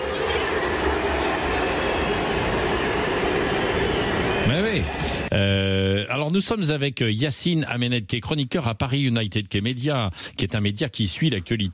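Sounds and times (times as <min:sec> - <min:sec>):
stadium crowd whistling in disapproval: 0:00.0 - 0:05.4
speech: 0:04.8 - 0:11.7.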